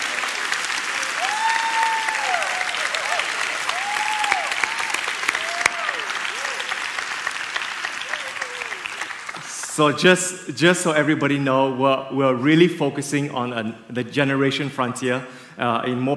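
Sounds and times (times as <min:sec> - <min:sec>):
audience applauding: 0:00.0 - 0:10.0
speech: 0:09.8 - 0:16.1.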